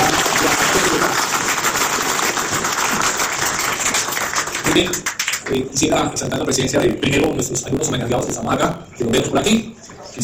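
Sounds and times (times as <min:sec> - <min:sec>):
audience applause: 0:00.0 - 0:05.5
speech: 0:04.8 - 0:10.2.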